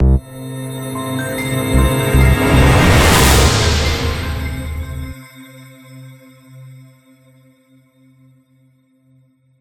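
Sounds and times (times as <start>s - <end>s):
transition end sound: 0.0s - 5.2s.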